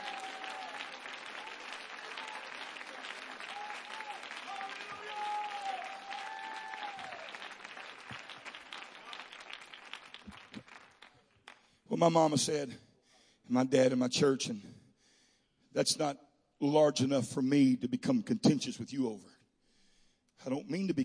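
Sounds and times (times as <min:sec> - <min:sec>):
audience clapping hands: 0:00.0 - 0:11.8
speech: 0:12.0 - 0:12.8, 0:13.5 - 0:14.7, 0:15.7 - 0:19.3, 0:20.4 - 0:21.0.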